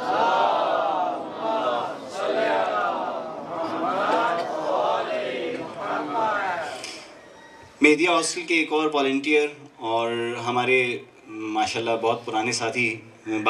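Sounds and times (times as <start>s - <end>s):
crowd loudly chanting the salawat in unison: 0.0s - 6.8s
speech: 7.8s - 13.4s.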